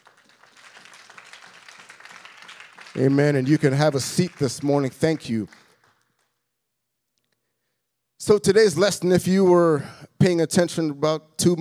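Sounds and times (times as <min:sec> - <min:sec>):
audience clapping hands: 0:00.0 - 0:06.4
speech: 0:03.0 - 0:05.6, 0:08.3 - 0:11.6.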